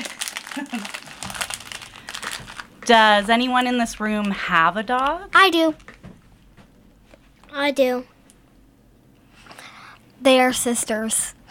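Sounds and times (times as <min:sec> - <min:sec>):
candy wrapper crinkling near the microphone: 0:00.0 - 0:04.5
speech: 0:00.6 - 0:01.2, 0:02.9 - 0:05.9, 0:07.6 - 0:08.1, 0:10.2 - 0:11.4.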